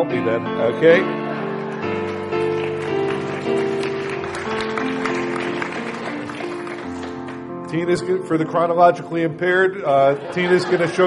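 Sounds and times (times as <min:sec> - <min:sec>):
speech: 0:00.0 - 0:01.2, 0:01.8 - 0:02.1, 0:07.7 - 0:11.0
loud music: 0:00.0 - 0:08.4
laughter: 0:00.9 - 0:02.7, 0:09.8 - 0:11.0
audience clapping in rhythm: 0:01.3 - 0:07.8.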